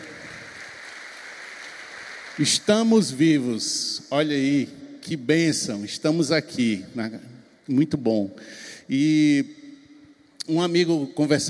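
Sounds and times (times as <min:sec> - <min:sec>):
audience applauding: 0:00.0 - 0:03.2
speech: 0:02.4 - 0:09.6, 0:10.4 - 0:11.4.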